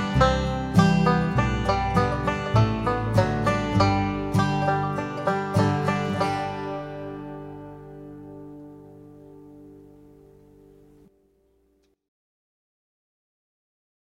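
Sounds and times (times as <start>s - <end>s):
banjo playing: 0.0s - 11.1s.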